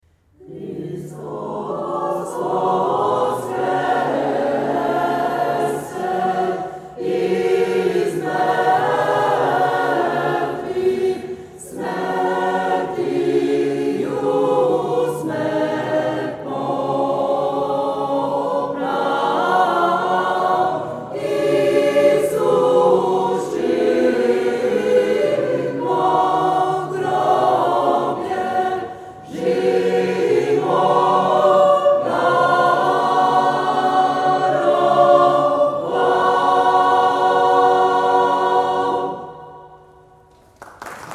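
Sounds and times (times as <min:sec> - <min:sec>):
Serbian choir singing: 0:00.3 - 0:40.3.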